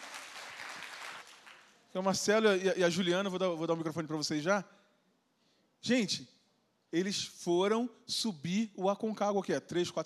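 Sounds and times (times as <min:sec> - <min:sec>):
crowd applauding: 0:00.0 - 0:01.8
speech: 0:02.0 - 0:04.8, 0:05.8 - 0:10.0.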